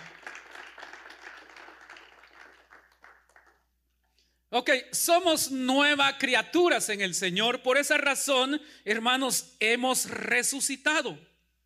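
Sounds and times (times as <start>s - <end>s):
audience applauding: 0.0s - 3.6s
speech: 4.5s - 11.3s.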